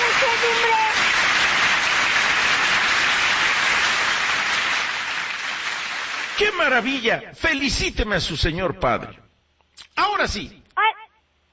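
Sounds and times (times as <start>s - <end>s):
audience applause: 0.0s - 6.8s
speech: 6.4s - 9.2s, 10.0s - 10.6s.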